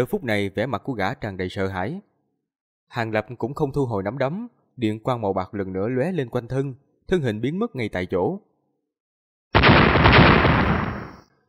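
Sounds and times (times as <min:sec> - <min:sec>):
speech: 0:00.0 - 0:02.1, 0:02.9 - 0:08.5
loud explosions in the distance: 0:09.6 - 0:11.2.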